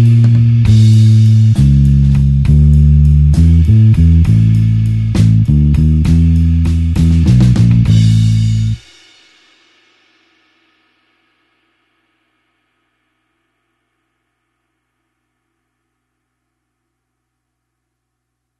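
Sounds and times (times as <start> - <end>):
slow blues bassline in A: 0.0 - 8.8.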